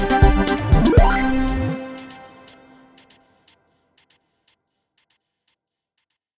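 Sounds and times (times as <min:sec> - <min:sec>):
electronic EDM music: 0:00.2 - 0:02.2.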